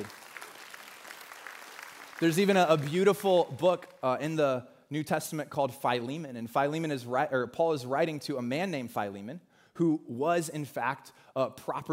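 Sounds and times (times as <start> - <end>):
audience applause: 0.0 - 3.2
speech: 2.2 - 11.9.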